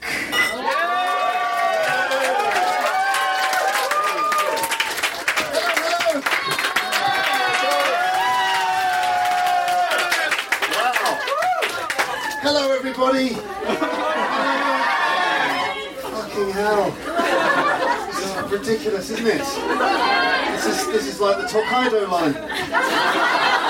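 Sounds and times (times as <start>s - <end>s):
whoops and shouts: 0.6s - 5.0s, 5.6s - 12.4s
crowd clapping: 0.6s - 13.0s
laughter: 9.8s - 12.4s, 13.0s - 23.6s
speech: 18.6s - 23.6s.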